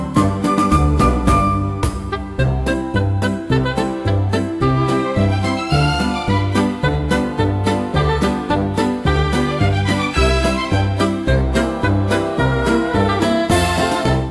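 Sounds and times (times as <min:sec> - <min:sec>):
triumphant win jingle: 0:00.2 - 0:14.2.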